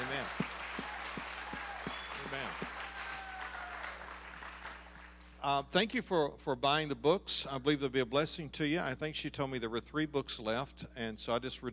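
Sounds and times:
crowd applauding: 0.0s - 5.4s
speech: 5.4s - 11.7s.

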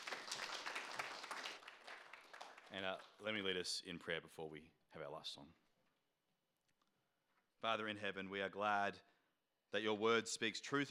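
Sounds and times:
audience clapping: 0.0s - 3.4s
speech: 2.7s - 5.6s, 7.6s - 9.1s, 9.7s - 10.8s.

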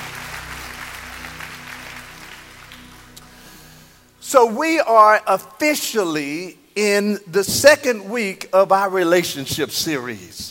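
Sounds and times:
audience clapping: 0.0s - 3.9s
speech: 4.3s - 10.5s.

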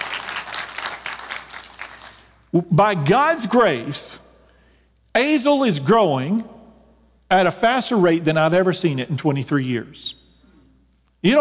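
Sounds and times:
audience applauding: 0.0s - 2.3s
speech: 2.5s - 4.2s, 5.2s - 6.5s, 7.3s - 10.2s.

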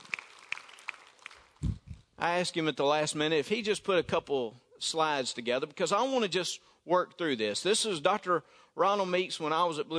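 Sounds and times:
audience applause: 0.0s - 1.6s
speech: 2.2s - 9.9s.

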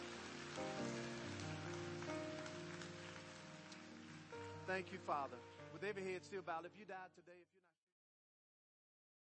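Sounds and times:
audience clapping: 0.0s - 6.0s
speech: 4.7s - 7.8s.

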